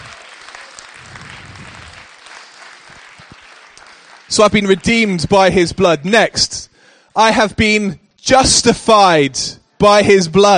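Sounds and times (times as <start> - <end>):
audience applause: 0.0 - 5.3
speech: 4.3 - 10.5.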